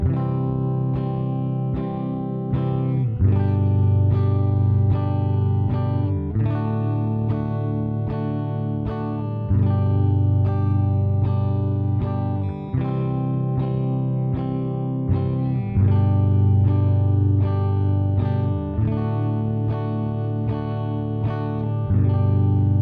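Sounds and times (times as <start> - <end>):
guitar low E note: 0.0 - 22.7.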